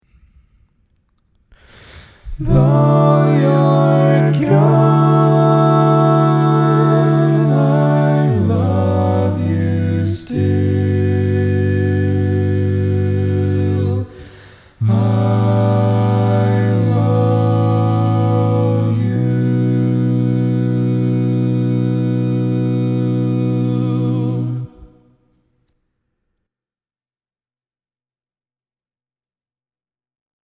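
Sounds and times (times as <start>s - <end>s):
barbershop quartet singing all parts: 2.3s - 25.0s.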